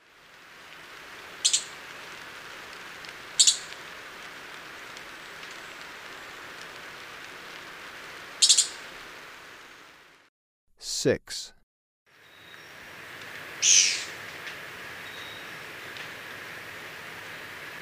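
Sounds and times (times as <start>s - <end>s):
background hiss: 0.0s - 11.5s, 12.2s - 17.8s
Esmeraldas antbird chip calls: 1.4s - 1.8s, 3.4s - 3.7s, 8.4s - 8.8s, 13.6s - 14.2s.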